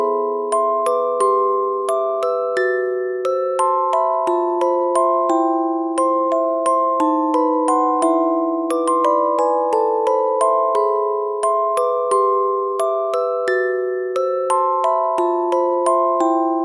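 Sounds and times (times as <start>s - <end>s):
dark music box melody: 0.0s - 16.6s.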